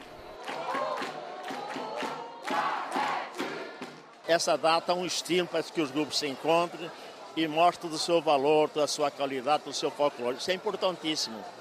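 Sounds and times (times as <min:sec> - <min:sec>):
folk group shouting a battle cry: 0:00.6 - 0:03.8
speech: 0:04.3 - 0:11.5.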